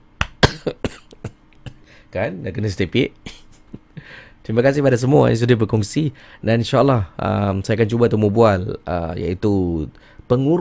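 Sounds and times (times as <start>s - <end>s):
person coughing: 0.4s - 1.9s
speech: 0.6s - 1.0s, 2.1s - 3.4s, 4.1s - 10.5s.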